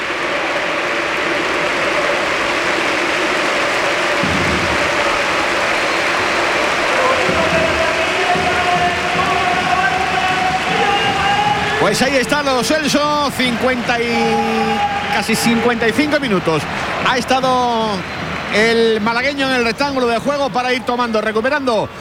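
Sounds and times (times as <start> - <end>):
stadium crowd at the Villamarín applauding Isco substituted off: 0.0 - 21.9
commentator speaking: 7.2 - 21.9
speech: 11.9 - 21.9.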